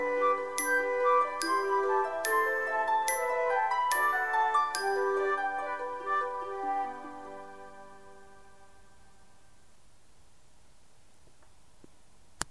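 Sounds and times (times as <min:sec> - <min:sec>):
sweet melody: 0:00.0 - 0:09.5.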